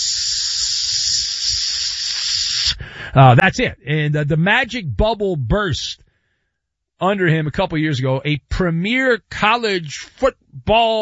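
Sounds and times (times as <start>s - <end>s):
food sizzling on hibachi grill: 0.0s - 2.6s
speech: 3.1s - 6.1s, 7.0s - 11.0s.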